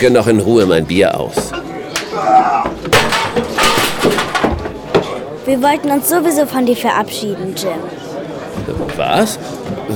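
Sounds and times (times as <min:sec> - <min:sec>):
speech: 0:00.0 - 0:02.8, 0:05.5 - 0:08.1, 0:08.7 - 0:09.9
saloon doors swinging open and shut: 0:02.9 - 0:05.1.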